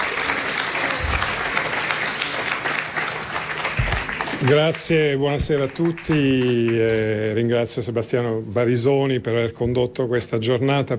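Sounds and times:
audience applause: 0.0s - 7.1s
speech: 4.4s - 10.9s.

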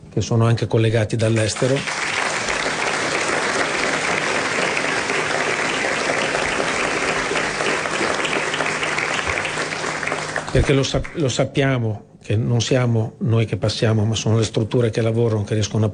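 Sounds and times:
speech: 0.2s - 2.0s, 10.5s - 15.9s
audience applause: 1.4s - 11.3s.

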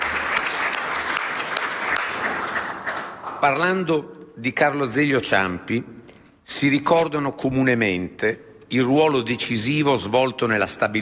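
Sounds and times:
affectionate applause from audience: 0.0s - 3.6s
speech: 3.4s - 10.9s.

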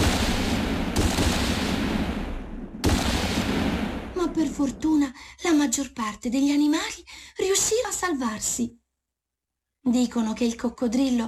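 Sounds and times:
dense crackling gunfire: 0.0s - 4.6s
speech: 4.4s - 8.8s, 9.8s - 11.2s.

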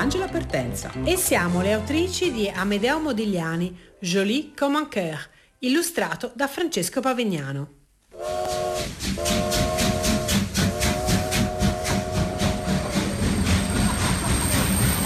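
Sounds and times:
speech: 0.0s - 8.4s
steam train at a station platform: 8.2s - 15.0s.

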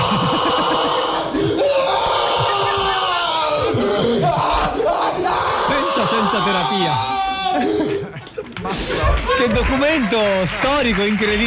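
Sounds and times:
person screaming while being trepanned: 0.0s - 8.0s
laughter: 0.0s - 11.4s
speech: 9.7s - 11.4s.

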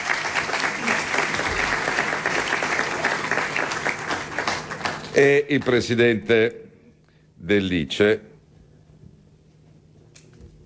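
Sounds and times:
audience applause: 0.0s - 5.7s
speech: 5.2s - 6.6s, 7.4s - 8.3s.

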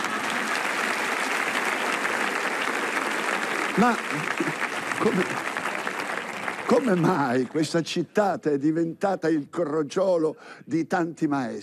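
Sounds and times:
audience applause: 0.0s - 7.8s
speech: 3.8s - 5.5s, 6.7s - 11.6s.

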